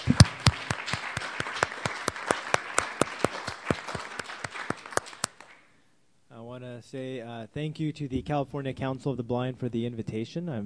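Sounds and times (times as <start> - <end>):
audience applause welcoming a speaker at a California Council of the Blind event: 0.0 - 5.6
speech: 6.8 - 10.6.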